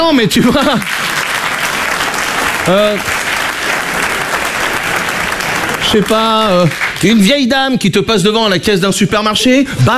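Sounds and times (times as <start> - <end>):
speech: 0.1 - 1.2, 2.6 - 3.2, 5.9 - 9.9
audience applause: 0.6 - 7.5.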